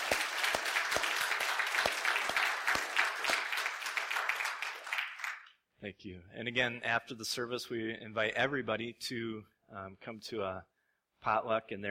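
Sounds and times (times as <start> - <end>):
audience applause: 0.0 - 5.5
speech: 5.8 - 11.9.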